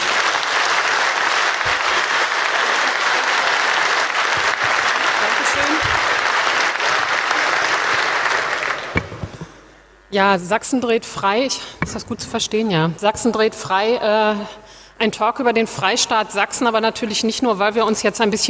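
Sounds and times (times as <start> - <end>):
audience applause: 0.0 - 9.4
speech: 10.1 - 18.4.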